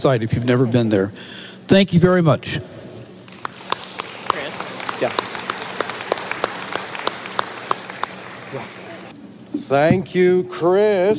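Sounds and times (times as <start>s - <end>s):
speech: 0.0s - 2.7s, 5.0s - 5.2s, 9.7s - 11.1s
audience applauding: 3.2s - 9.1s.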